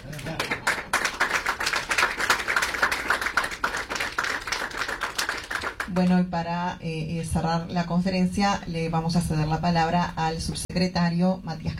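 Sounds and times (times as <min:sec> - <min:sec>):
audience applause: 0:00.0 - 0:05.9
speech: 0:05.9 - 0:11.7.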